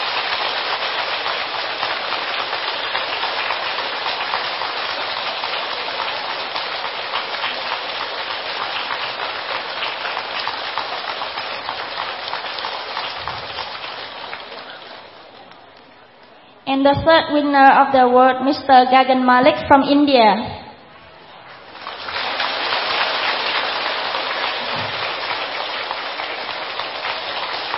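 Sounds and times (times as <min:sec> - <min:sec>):
audience applause: 0:00.0 - 0:15.8, 0:21.5 - 0:27.7
speech: 0:16.8 - 0:20.5.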